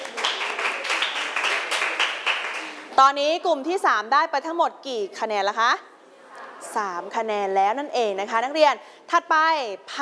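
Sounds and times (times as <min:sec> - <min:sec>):
students in a classroom clapping for a group of classmates: 0:00.0 - 0:02.9
speech: 0:03.0 - 0:05.9, 0:06.8 - 0:10.0.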